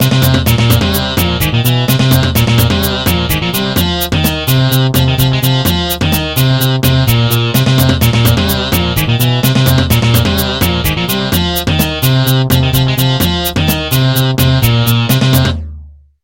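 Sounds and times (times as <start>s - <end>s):
level complete MIDI jingle: 0.0s - 15.7s.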